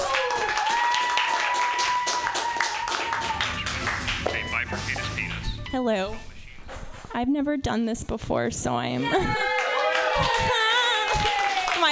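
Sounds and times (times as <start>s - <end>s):
audience clapping: 0.0s - 5.4s, 9.3s - 11.9s
speech: 5.7s - 6.3s, 7.1s - 9.5s, 10.2s - 10.6s.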